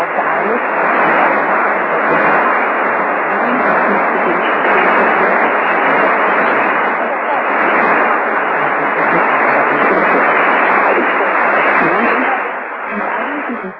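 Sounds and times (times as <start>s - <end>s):
shortwave radio signal at 7265 kHz: 0.0s - 13.7s.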